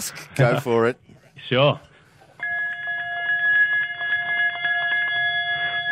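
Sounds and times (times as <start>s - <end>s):
speech: 0.0s - 1.9s
bell being rung: 2.4s - 5.9s.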